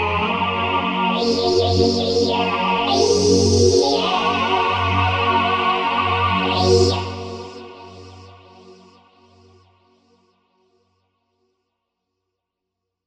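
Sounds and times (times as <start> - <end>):
Novation UltraNova synthesizer: 0.0 - 9.6.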